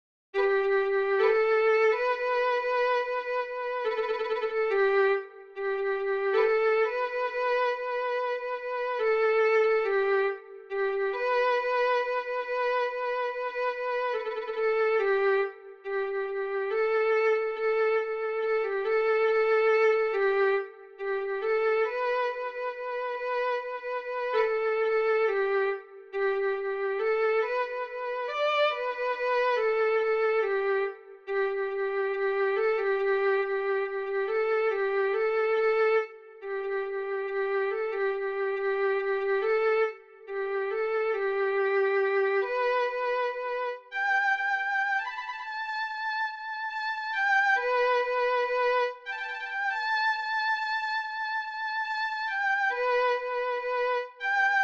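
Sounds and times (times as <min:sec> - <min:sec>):
violin: 0:00.4 - 0:54.6.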